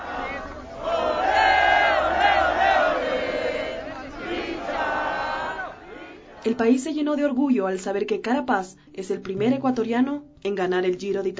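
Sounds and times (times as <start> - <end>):
thousands of people cheering and chanting in welcome of a cyclist in Ecuador: 0.0 - 6.6
speech: 6.4 - 11.3.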